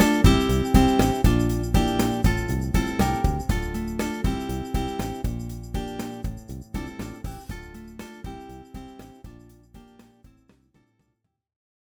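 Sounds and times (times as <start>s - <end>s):
acoustic guitar strumming Latin pop: 0.0s - 10.0s.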